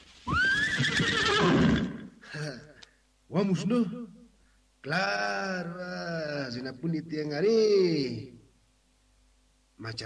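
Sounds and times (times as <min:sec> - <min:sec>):
horse being urged on whinnying: 0:00.2 - 0:02.2
speech: 0:03.3 - 0:04.1, 0:04.8 - 0:08.4, 0:09.8 - 0:10.0.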